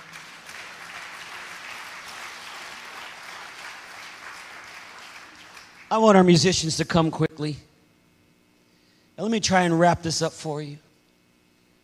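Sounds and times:
audience clapping hands: 0.0 - 6.2
speech: 5.9 - 7.7, 9.2 - 10.8.

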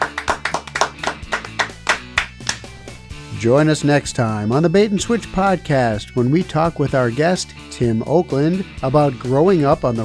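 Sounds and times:
hands clapping: 0.0 - 2.9
speech: 3.4 - 10.0.

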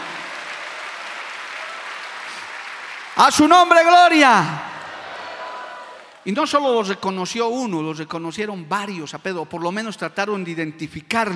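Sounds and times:
crowd applause: 0.0 - 6.3
speech: 3.2 - 4.7, 6.2 - 11.3.

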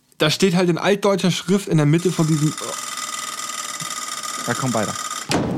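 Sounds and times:
speech: 0.2 - 2.9, 4.5 - 5.4
alarm clock going off: 1.4 - 5.2.

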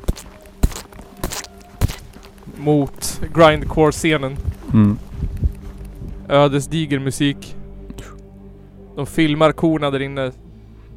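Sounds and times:
heavy footsteps trudging through mud: 0.0 - 6.3
speech: 2.5 - 5.1, 6.3 - 7.5, 9.0 - 10.4.

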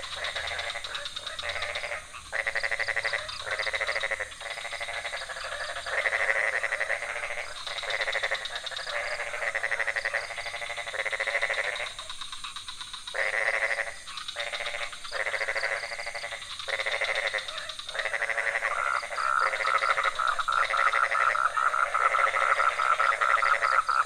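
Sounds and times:
frogs calling in a dense chorus: 0.0 - 24.0.

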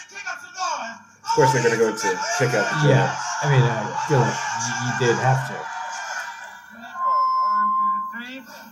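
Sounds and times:
speech: 0.8 - 5.8
laughter: 1.4 - 6.8
censorship bleep tone: 6.8 - 8.5.

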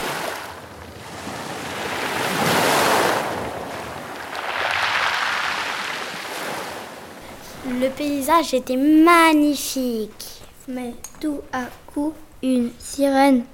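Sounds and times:
sea waves breaking on the shore: 0.0 - 8.9
speech: 7.8 - 13.5.

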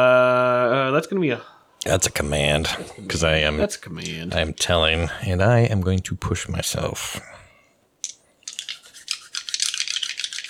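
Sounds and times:
speech: 1.0 - 7.4
dice rolling: 8.0 - 10.4.

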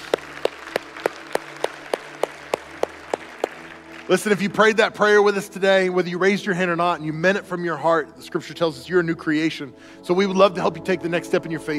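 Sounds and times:
audience applause: 0.0 - 4.6
speech: 4.1 - 11.7.

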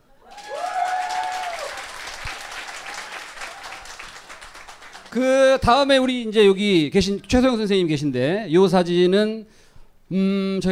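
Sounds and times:
audience applause: 0.2 - 5.2
speech: 5.2 - 10.7.

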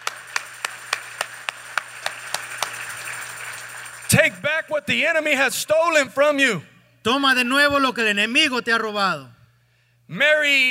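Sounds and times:
audience clapping: 0.0 - 4.5
low constant hum: 0.0 - 10.6
speech: 4.2 - 9.4, 10.1 - 10.6.

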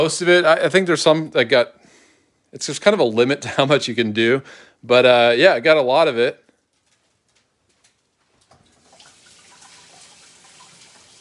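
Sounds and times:
speech: 0.0 - 1.8, 2.5 - 6.4
tap water running as something is rinsed off: 8.4 - 11.2.

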